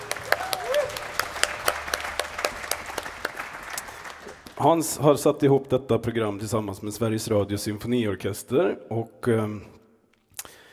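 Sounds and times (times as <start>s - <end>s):
audience applause: 0.0s - 4.6s
speech: 4.6s - 9.8s.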